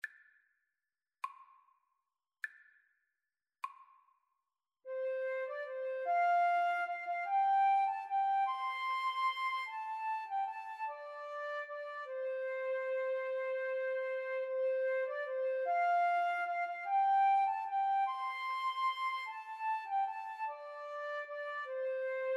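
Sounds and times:
flute duet: 4.9s - 22.3s.

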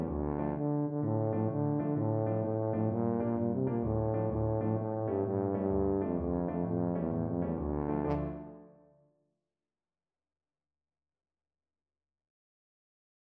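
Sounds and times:
tuba playing a tarantella: 0.0s - 8.8s.

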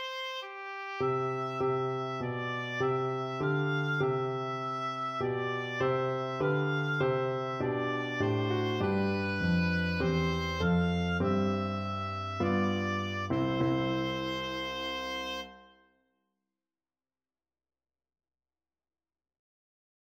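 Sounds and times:
oboe playing a Christmas carol: 0.0s - 15.8s.

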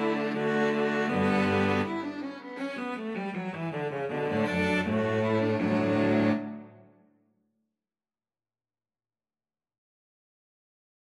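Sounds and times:
string trio playing a gavotte: 0.0s - 6.9s.

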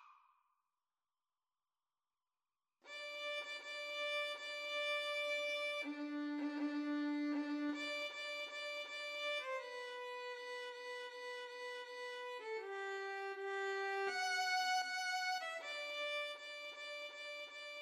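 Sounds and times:
violin: 2.9s - 17.8s.

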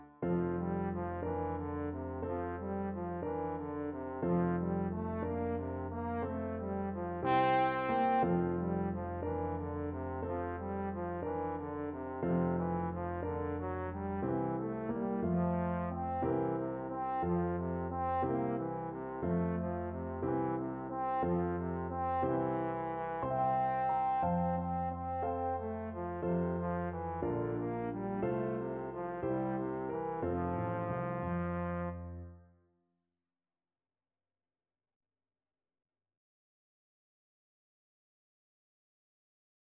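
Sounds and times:
trombone playing a slumber song: 0.4s - 32.2s.

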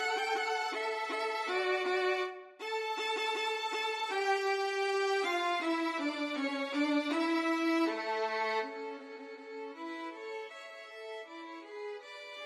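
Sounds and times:
violin duet playing a march: 0.0s - 12.4s.

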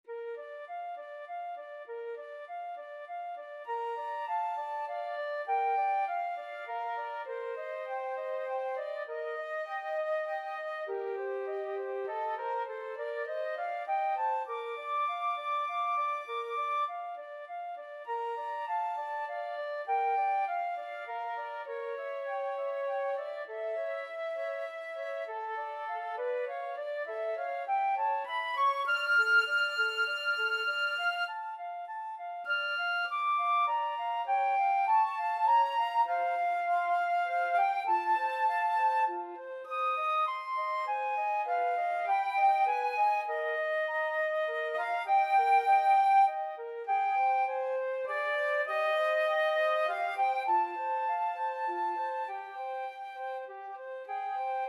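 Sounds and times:
flute duet playing a classical piece: 0.0s - 54.6s.

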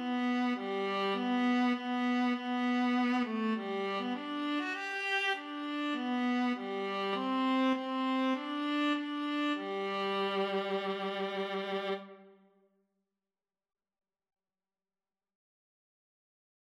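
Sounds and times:
viola duet: 0.0s - 12.4s.

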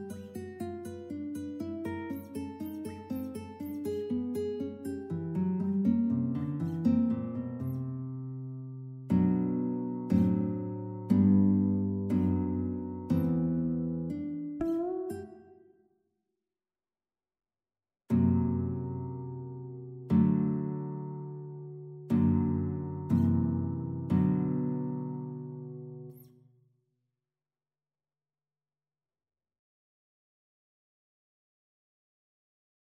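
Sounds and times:
guitar prelude: 0.0s - 15.7s, 18.1s - 26.4s.

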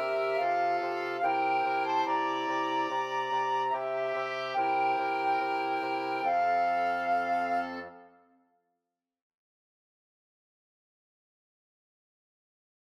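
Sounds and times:
flexible mixed ensemble of 4 players: 0.0s - 8.0s.

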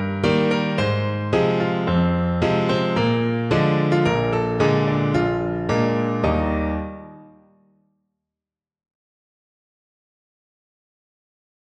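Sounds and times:
piano: 0.0s - 7.8s.

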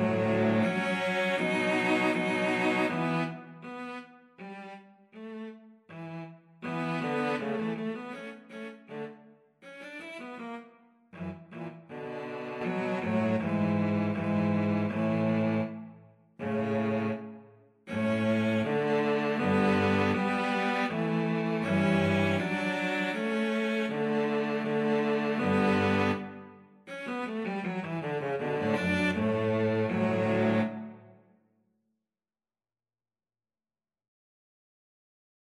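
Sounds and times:
string trio playing a gavotte: 0.0s - 4.7s, 6.6s - 9.1s, 11.2s - 15.8s, 16.4s - 17.3s, 17.9s - 26.4s, 27.1s - 31.0s.

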